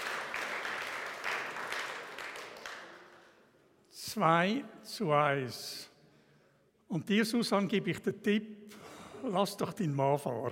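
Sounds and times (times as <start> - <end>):
crowd clapping: 0.0 - 3.5
speech: 4.2 - 5.9, 6.9 - 10.4.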